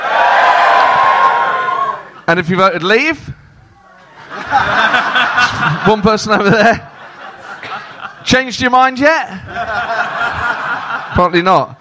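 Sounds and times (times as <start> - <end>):
audience cheering: 0.0 - 2.2
speech: 2.3 - 3.4, 5.8 - 6.9, 8.3 - 10.5, 11.2 - 11.7
laughter: 4.0 - 8.3, 9.2 - 11.6.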